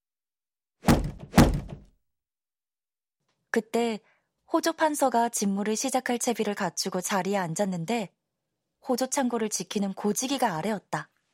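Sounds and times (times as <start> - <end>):
foot kicking a door: 0.8 - 1.9
speech: 3.6 - 8.2, 8.8 - 11.1.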